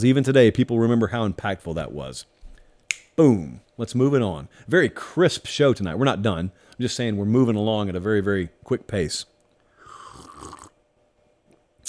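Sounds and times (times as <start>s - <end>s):
speech: 0.0s - 2.4s, 3.2s - 9.3s
person sipping a drink on microphone: 9.8s - 10.8s.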